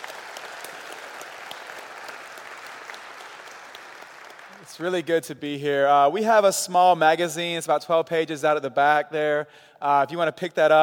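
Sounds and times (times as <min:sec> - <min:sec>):
audience applause: 0:00.0 - 0:04.7
speech: 0:04.7 - 0:10.8.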